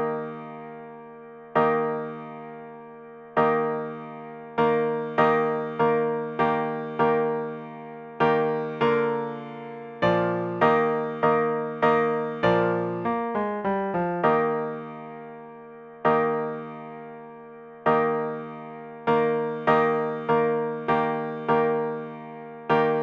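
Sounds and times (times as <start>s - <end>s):
piano: 0.0s - 23.0s.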